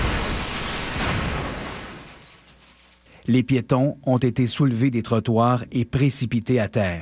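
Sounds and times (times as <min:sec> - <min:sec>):
loud rumbling explosion over a city: 0:00.0 - 0:02.2
windows across a whole city shattering: 0:00.0 - 0:03.2
speech: 0:03.3 - 0:07.0.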